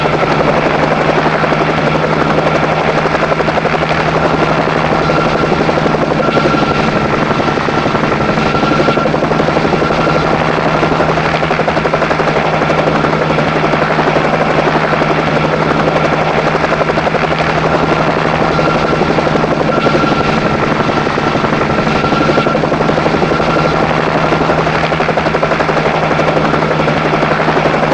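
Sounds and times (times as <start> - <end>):
Bell 47 helicopter starting up and idling: 0.0 - 27.9.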